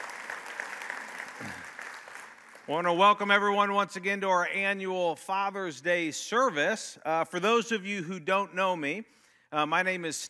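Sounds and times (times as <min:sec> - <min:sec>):
audience applause welcoming a pastor at an annual Father's Day church service: 0:00.0 - 0:02.7
speech: 0:01.4 - 0:01.7, 0:02.7 - 0:10.2.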